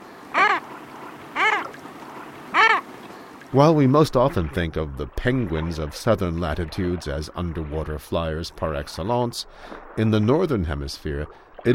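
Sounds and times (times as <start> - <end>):
Common Murre rasping croaks: 0.3 - 3.0
speech: 3.5 - 11.7.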